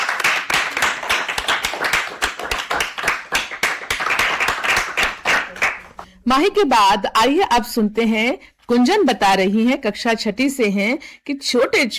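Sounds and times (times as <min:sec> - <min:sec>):
children clapping: 0:00.0 - 0:06.1
speech: 0:06.3 - 0:11.9.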